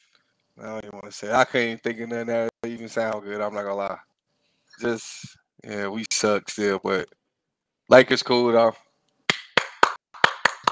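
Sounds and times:
speech: 0.6 - 4.1, 4.8 - 7.2, 7.9 - 8.8
round of applause: 9.3 - 10.7.

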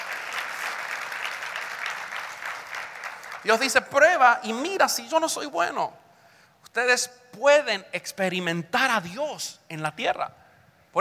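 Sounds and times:
audience applause: 0.0 - 3.6
speech: 3.4 - 6.0, 6.8 - 11.0.

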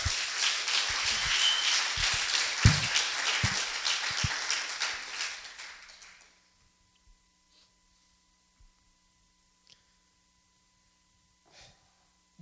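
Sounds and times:
congregation applause as a clap offering during a church service: 0.0 - 6.4.

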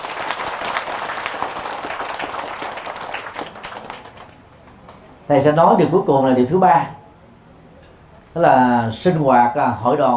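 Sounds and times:
audience applause: 0.0 - 4.4
speech: 5.3 - 7.0, 8.4 - 10.1.

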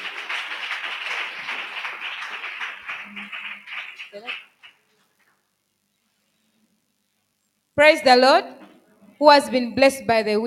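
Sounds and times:
audience clapping hands: 0.0 - 5.4
speech: 4.1 - 4.5, 7.8 - 8.6, 9.2 - 10.4.

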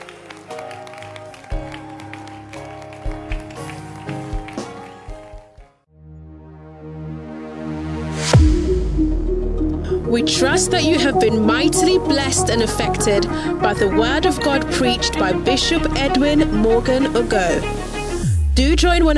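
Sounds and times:
crowd clapping along: 0.0 - 5.8
loud keyboard music with sustained chords: 0.0 - 19.1
low drone: 6.2 - 12.2
speech: 10.1 - 17.8, 18.6 - 19.1.

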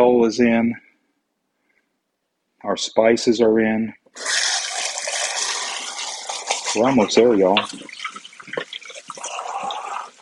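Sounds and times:
speech: 0.0 - 0.8, 2.6 - 4.6, 6.8 - 8.7
running tap water rinsing out empty metal cans: 4.2 - 9.3.

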